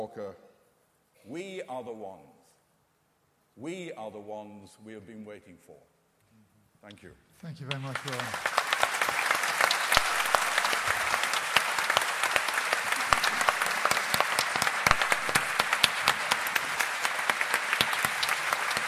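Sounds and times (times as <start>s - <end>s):
speech: 0.0s - 0.5s, 1.2s - 2.4s, 3.6s - 5.9s, 6.8s - 8.6s
audience applause: 7.6s - 18.8s.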